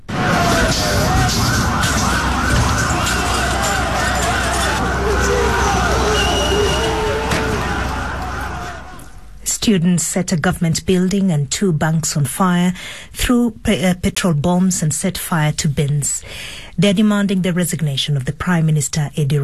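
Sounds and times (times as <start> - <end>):
crowd roar at a street protest: 0.0 - 9.3
people shouting: 0.0 - 9.3
police sirens wailing: 0.0 - 9.3
traffic rumble: 0.0 - 9.4
speech: 9.7 - 19.4.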